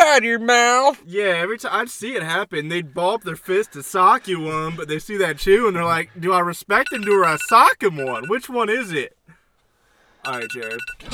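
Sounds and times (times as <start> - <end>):
speech: 0.2 - 9.2, 10.2 - 11.1
alarm going off: 6.8 - 8.4, 10.3 - 11.1.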